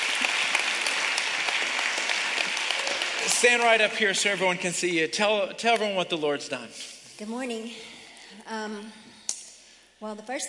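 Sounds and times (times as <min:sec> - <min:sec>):
church congregation applauding: 0:00.0 - 0:05.2
speech: 0:03.4 - 0:09.0, 0:10.0 - 0:10.4.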